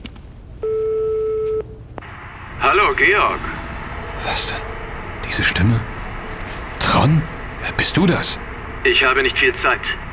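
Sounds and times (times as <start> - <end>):
phone ringback tone: 0.6 - 1.8
speech: 2.7 - 3.5, 4.2 - 4.7, 5.3 - 5.9, 7.0 - 10.0.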